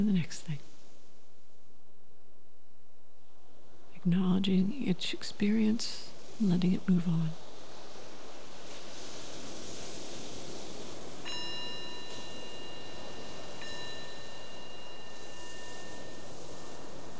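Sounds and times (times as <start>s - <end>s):
speech: 0.0s - 0.7s, 4.0s - 7.4s
meditation bell ringing: 11.3s - 17.1s.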